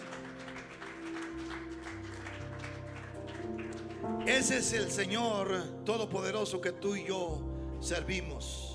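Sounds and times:
audience applauding loudly: 0:00.0 - 0:05.0
speech: 0:04.0 - 0:08.6.

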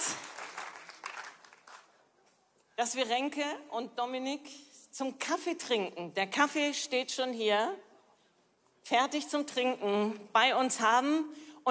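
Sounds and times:
applause: 0:00.0 - 0:02.2
speech: 0:02.8 - 0:07.9, 0:08.9 - 0:11.6.

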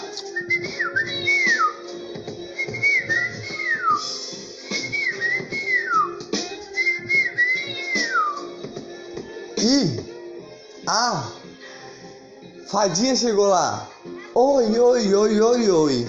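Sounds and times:
person whistling to imitate a little bird: 0:00.3 - 0:01.9, 0:02.6 - 0:08.5
speech: 0:12.7 - 0:16.0.

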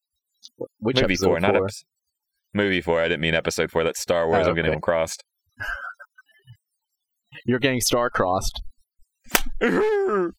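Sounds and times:
speech: 0:00.5 - 0:05.9, 0:07.3 - 0:08.7, 0:09.3 - 0:10.3
person slapping own knee: 0:09.3 - 0:09.6.

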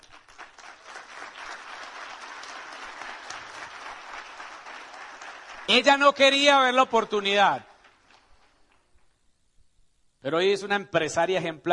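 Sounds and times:
audience applause: 0:00.0 - 0:08.8
speech: 0:05.7 - 0:07.7, 0:10.2 - 0:11.7.

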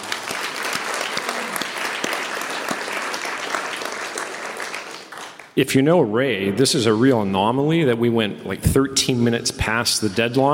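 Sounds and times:
audience applause: 0:00.0 - 0:05.6
speech: 0:05.6 - 0:10.5.

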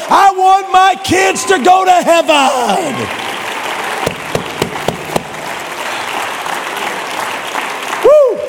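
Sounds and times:
speech: 0:00.1 - 0:03.2
audience clapping hands: 0:02.6 - 0:08.4.

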